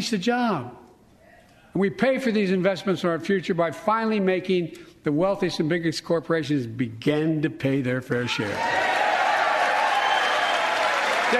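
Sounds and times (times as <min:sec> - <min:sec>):
speech: 0:00.0 - 0:00.8, 0:01.8 - 0:08.9
group applause: 0:08.1 - 0:11.3.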